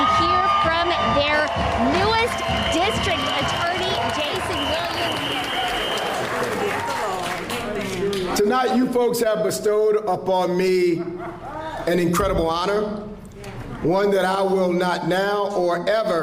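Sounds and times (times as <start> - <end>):
crowd cheering excitedly: 0.0 - 8.4
speech: 8.5 - 13.1, 13.8 - 16.2.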